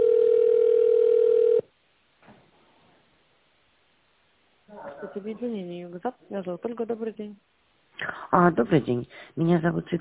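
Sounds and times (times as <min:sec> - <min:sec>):
telephone ringback tone while waiting for operator: 0:00.0 - 0:01.7
speech: 0:05.2 - 0:09.9.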